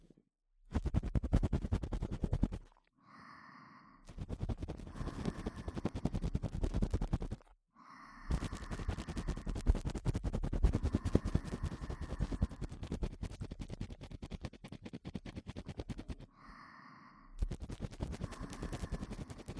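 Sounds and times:
deep ear cleaning scratching in the right ear: 0:00.7 - 0:02.8, 0:04.1 - 0:07.5, 0:08.3 - 0:16.3, 0:17.4 - 0:19.5.

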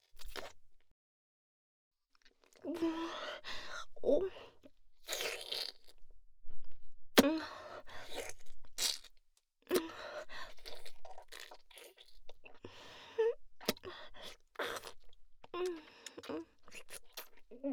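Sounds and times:
crunching and chewing food: 0:00.0 - 0:00.7, 0:02.1 - 0:02.8, 0:05.0 - 0:06.0, 0:07.9 - 0:12.6, 0:13.6 - 0:17.6
speech: 0:02.6 - 0:03.2, 0:04.0 - 0:04.4.

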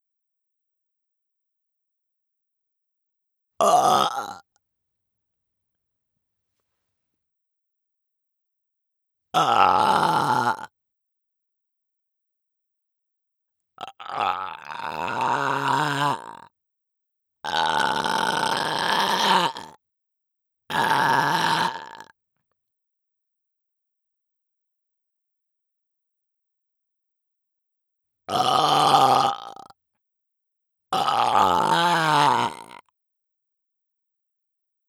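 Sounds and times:
person burping: 0:03.6 - 0:04.4, 0:09.4 - 0:10.7, 0:13.8 - 0:16.4, 0:17.5 - 0:19.8, 0:20.7 - 0:22.1, 0:28.3 - 0:29.7, 0:31.0 - 0:32.8.

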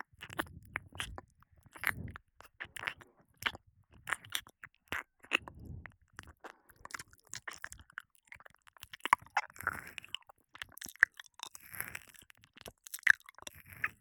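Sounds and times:
ear licking loop in the right ear: 0:00.1 - 0:09.5.

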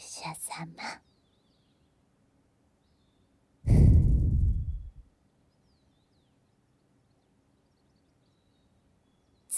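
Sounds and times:
blowing into the right ear: 0:03.7 - 0:05.0.

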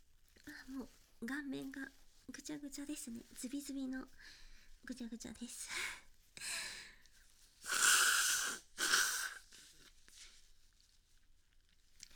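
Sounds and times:
speech: 0:00.7 - 0:06.6
sneeze: 0:07.6 - 0:09.4.

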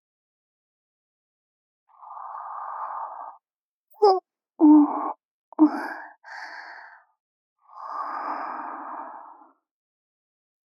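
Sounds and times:
younger sister breathing in sleep in the left channel: 0:01.9 - 0:03.4, 0:05.6 - 0:09.6.

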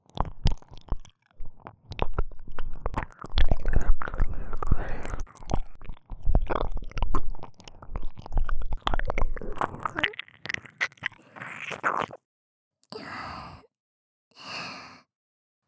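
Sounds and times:
ear licking sounds: 0:00.0 - 0:12.2.

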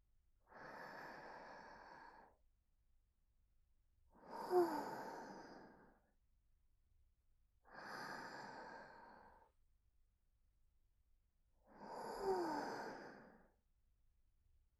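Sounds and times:
slow deep breathing during a guided relaxation: 0:00.5 - 0:02.4, 0:04.2 - 0:06.1, 0:07.7 - 0:09.5, 0:11.7 - 0:13.6.

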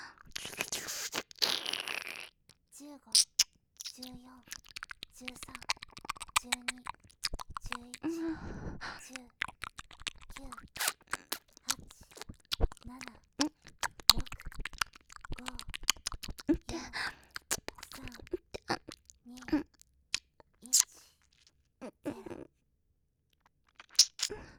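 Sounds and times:
binaural ear licking: 0:00.2 - 0:02.4, 0:03.1 - 0:08.2, 0:08.9 - 0:21.5, 0:23.7 - 0:24.3
person counting in binaural recording: 0:03.9 - 0:08.4, 0:09.0 - 0:19.7.

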